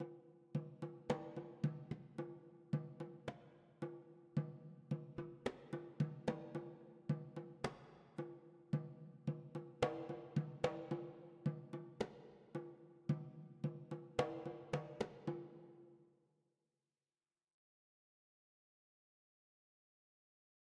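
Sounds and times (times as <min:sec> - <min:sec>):
drums: 0:00.0 - 0:15.8.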